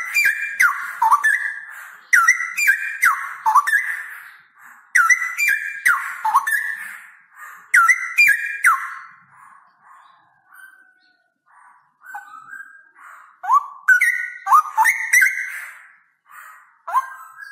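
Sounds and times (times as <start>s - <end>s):
male straw-headed bulbul singing with rolling trills: 0.0s - 17.4s.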